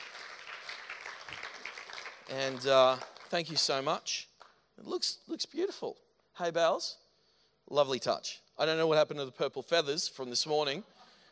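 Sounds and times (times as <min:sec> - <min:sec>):
crowd audience clapping: 0:00.0 - 0:04.6
speech: 0:02.3 - 0:07.0, 0:07.7 - 0:11.0.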